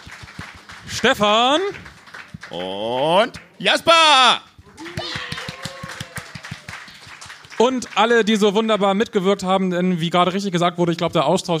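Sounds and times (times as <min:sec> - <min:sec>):
audience applause: 0:00.0 - 0:03.5, 0:04.7 - 0:08.6
speech: 0:01.0 - 0:01.9, 0:02.5 - 0:04.5, 0:07.6 - 0:11.5
high cheer: 0:03.8 - 0:08.1.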